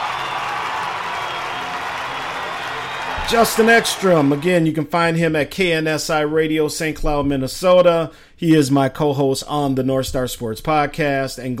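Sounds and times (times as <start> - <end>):
crowd applauding and cheering: 0.0 - 4.8
speech: 3.3 - 11.5.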